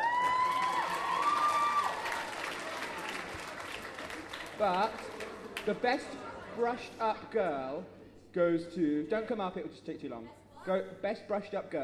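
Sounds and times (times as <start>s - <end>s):
high-pitched cheers and whoops: 0.0s - 3.0s
crowd clapping: 0.0s - 6.2s
speech: 4.6s - 11.8s.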